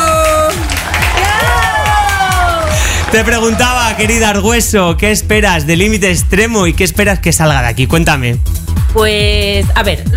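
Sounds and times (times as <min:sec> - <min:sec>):
studio audience clapping on a Spanish television show: 0:00.0 - 0:04.7
speech: 0:03.1 - 0:10.1.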